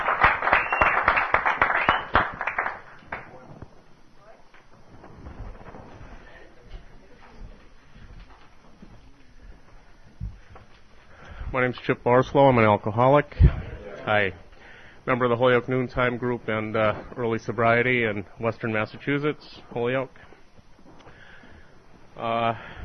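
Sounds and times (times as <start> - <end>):
round of applause: 0.0 - 3.5
speech: 11.6 - 14.4, 15.1 - 20.3, 22.2 - 22.8.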